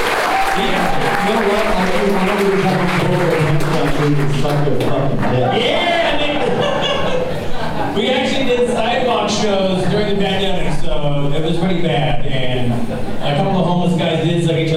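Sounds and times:
crowd clapping: 0.0 - 5.4
scattered cheers and voices: 0.0 - 8.0
speech: 0.6 - 6.2, 8.0 - 14.7
laughter: 0.6 - 8.7, 12.6 - 13.9.

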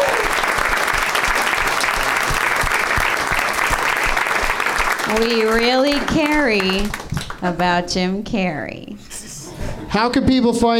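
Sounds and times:
small group applauding: 0.0 - 7.8
speech: 5.1 - 9.2, 9.9 - 10.7.

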